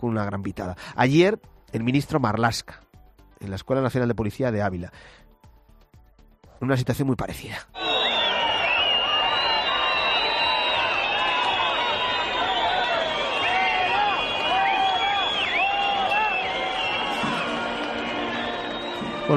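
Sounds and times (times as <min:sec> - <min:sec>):
speech: 0:00.0 - 0:02.8, 0:03.4 - 0:05.2, 0:06.6 - 0:07.9
crowd whistling at minister Marlaska at the National Police School in Ávila: 0:07.8 - 0:19.3
crowd hubbub: 0:09.3 - 0:19.3.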